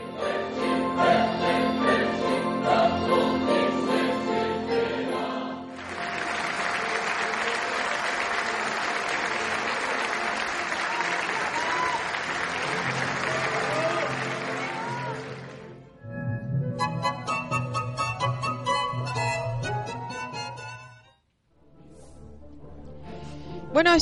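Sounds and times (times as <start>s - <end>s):
orchestral and choral music: 0.0s - 23.8s
concert audience applause: 5.7s - 15.8s.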